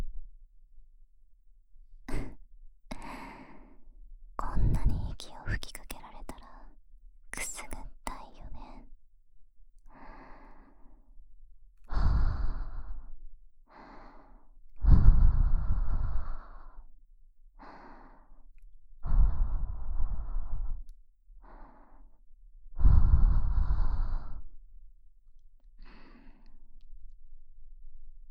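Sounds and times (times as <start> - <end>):
sweet soft breathing: 2.1 - 3.9, 9.9 - 11.2, 11.8 - 16.9, 17.6 - 24.6, 25.8 - 26.7.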